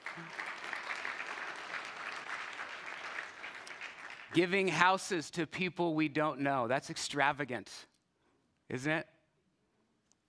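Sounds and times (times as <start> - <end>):
audience applause: 0.0 - 4.6
speech: 4.4 - 7.9, 8.7 - 9.1.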